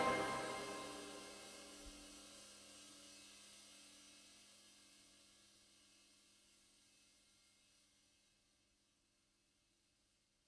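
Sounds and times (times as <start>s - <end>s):
retro big band music: 0.0s - 1.1s.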